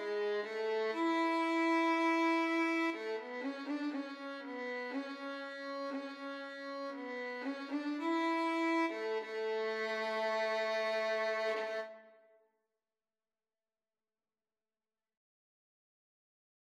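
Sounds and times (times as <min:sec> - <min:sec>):
violin in a violin and flute duet: 0:00.0 - 0:12.3.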